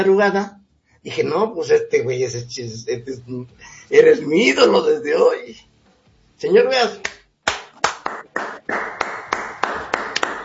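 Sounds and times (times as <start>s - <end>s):
speech: 0.0s - 5.7s, 6.4s - 7.1s
applause: 7.5s - 10.4s.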